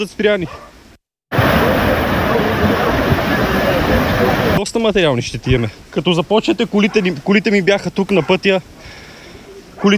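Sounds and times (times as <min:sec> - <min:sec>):
speech: 0:00.0 - 0:00.7, 0:04.0 - 0:09.0, 0:09.8 - 0:09.9
flooded river rushing and carrying stones: 0:01.3 - 0:04.6.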